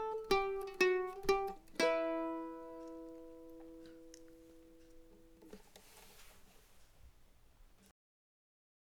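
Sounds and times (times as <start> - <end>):
slow mandolin: 0.0 - 7.0.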